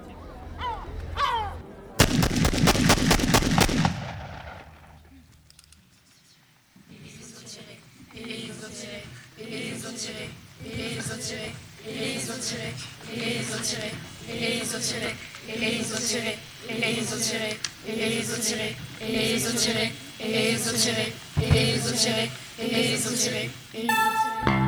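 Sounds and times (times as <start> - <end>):
voices: 0.0 - 2.3, 4.5 - 24.6
gunfire at a crowd throwing stones: 2.0 - 5.1.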